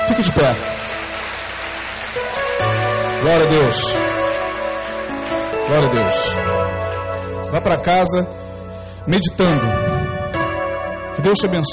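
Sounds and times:
crowd applauding: 0.0 - 6.8
sustained musical tones: 0.0 - 11.7
speech: 0.2 - 1.0, 3.2 - 4.1, 5.7 - 6.9, 7.5 - 8.4, 9.0 - 9.9, 11.2 - 11.7.

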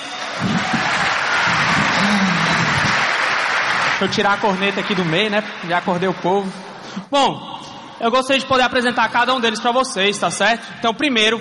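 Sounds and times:
audience applause: 0.0 - 6.9
speech: 4.0 - 11.4.

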